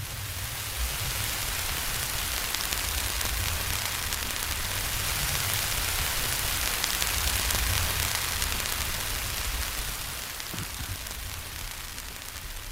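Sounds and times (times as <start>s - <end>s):
recorded solar storm hissing and crackling static: 0.0s - 12.7s.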